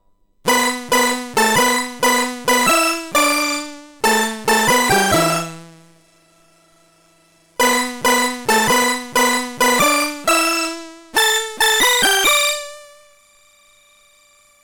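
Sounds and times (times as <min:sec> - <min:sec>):
C64 synthesizer: 0:00.5 - 0:05.9, 0:07.6 - 0:12.8.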